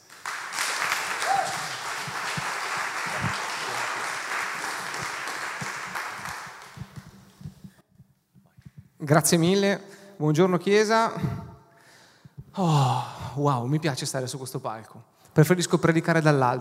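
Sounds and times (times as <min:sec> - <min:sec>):
audience applause: 0:00.0 - 0:07.4
speech: 0:09.1 - 0:11.4, 0:12.6 - 0:16.5.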